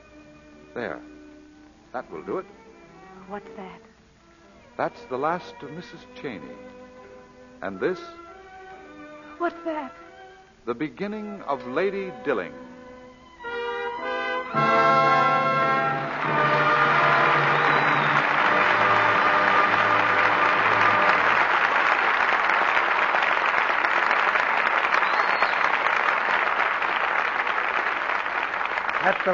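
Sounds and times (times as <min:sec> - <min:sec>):
speech: 0:00.7 - 0:01.2, 0:01.9 - 0:02.6, 0:03.3 - 0:03.9, 0:04.8 - 0:06.8, 0:07.6 - 0:08.2, 0:09.4 - 0:10.0, 0:10.6 - 0:12.7, 0:14.5 - 0:14.8
audience applause: 0:14.5 - 0:29.3.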